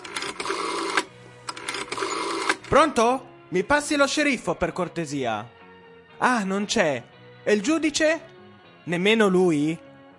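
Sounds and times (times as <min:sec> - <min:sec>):
telephone being dialled, mechanical whirring and clicks: 0:00.0 - 0:02.7
speech: 0:02.7 - 0:05.6, 0:06.2 - 0:09.8.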